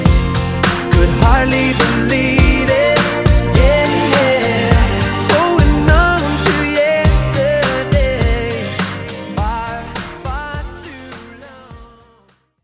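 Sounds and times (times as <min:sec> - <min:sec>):
classic drum beat at 103 bpm: 0:00.1 - 0:09.6.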